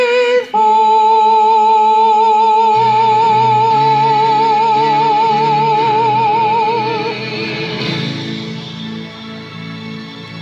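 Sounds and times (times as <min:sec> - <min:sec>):
soprano singing: 0:00.0 - 0:08.0.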